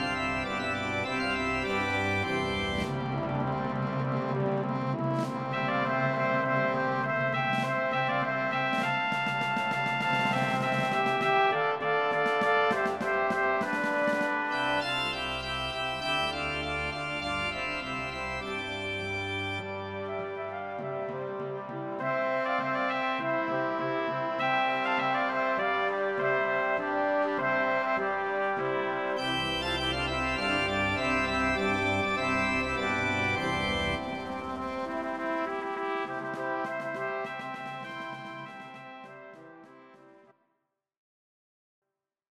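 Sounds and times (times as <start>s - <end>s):
organ: 0.0s - 20.8s, 29.2s - 39.2s
brass instruments: 0.0s - 40.3s.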